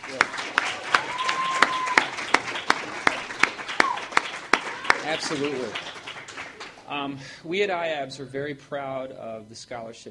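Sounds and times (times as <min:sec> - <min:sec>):
audience applause for scholarship winners: 0:00.0 - 0:07.1
speech: 0:05.1 - 0:05.9, 0:06.9 - 0:10.0.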